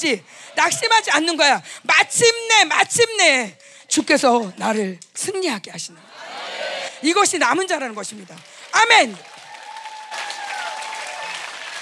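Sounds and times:
speech: 0.0s - 6.4s, 7.0s - 9.3s
audience clapping: 7.4s - 11.8s.

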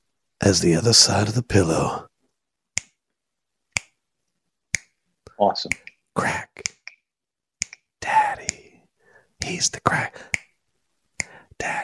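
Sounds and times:
speech: 0.4s - 2.1s, 5.4s - 6.7s, 9.4s - 10.4s, 11.6s - 11.8s
finger snaps: 3.7s - 4.0s, 4.7s - 5.0s, 5.6s - 8.7s, 10.3s - 10.6s, 11.2s - 11.4s.

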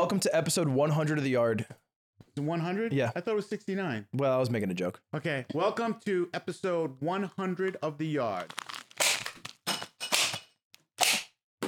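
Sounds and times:
speech: 0.0s - 1.8s, 2.4s - 8.7s
party cracker being pulled and popping: 8.3s - 11.3s.

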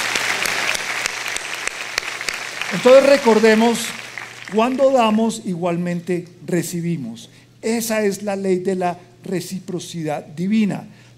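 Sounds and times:
audience applause: 0.0s - 5.2s
speech: 2.7s - 11.1s.

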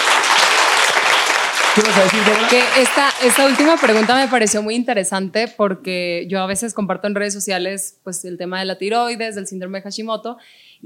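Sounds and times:
crowd applauding: 0.0s - 4.7s
speech: 1.8s - 10.8s.

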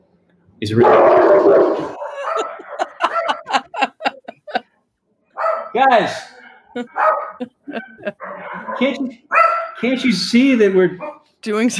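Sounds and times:
speech: 0.6s - 2.0s, 5.8s - 11.7s
Claude the dog barking: 0.8s - 3.6s, 5.4s - 10.0s, 11.0s - 11.3s
laughter: 1.9s - 4.7s, 6.8s - 9.2s.

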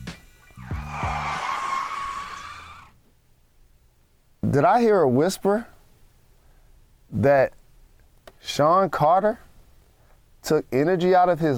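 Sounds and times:
braking tire screech sound effect: 0.6s - 2.9s
speech: 4.6s - 5.7s, 7.1s - 7.6s, 8.4s - 9.4s, 10.4s - 11.5s.

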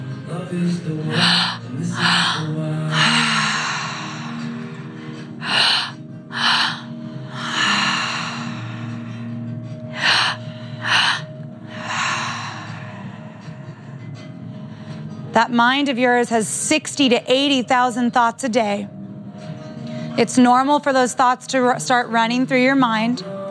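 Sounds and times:
steady drone of music: 0.0s - 23.4s
speech: 0.5s - 3.0s, 15.4s - 19.0s, 20.2s - 23.3s
deep forceful breaths at a breathwork session in a Lululemon store: 1.0s - 15.3s.

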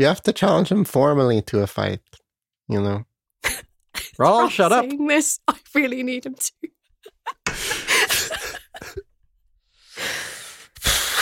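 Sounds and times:
speech: 0.0s - 3.1s, 4.2s - 8.2s
laughter: 7.0s - 9.0s
person taking a really deep breath: 7.5s - 8.5s, 9.6s - 11.1s.

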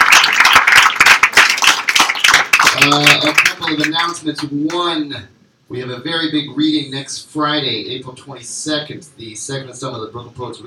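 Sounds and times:
audience applause: 0.0s - 4.2s
speech: 2.8s - 10.6s.

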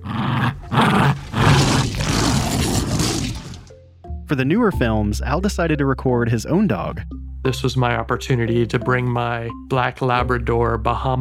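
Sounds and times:
Tyrannosaurus roar sound effect: 0.0s - 3.7s
speech: 4.3s - 11.2s.

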